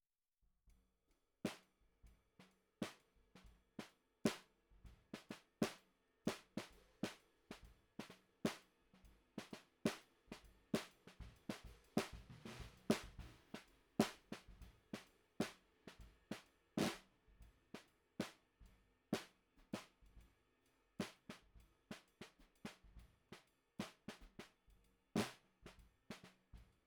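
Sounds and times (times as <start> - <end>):
snare drum recorded from the bottom: 2.8 - 17.1, 17.8 - 18.4, 19.2 - 20.2, 21.0 - 24.6, 25.2 - 26.8.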